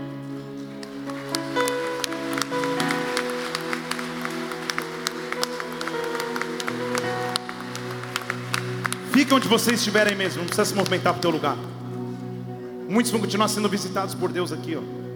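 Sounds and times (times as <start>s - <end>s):
audience applause: 0.3s - 11.4s
speech: 9.2s - 11.8s, 12.9s - 15.0s.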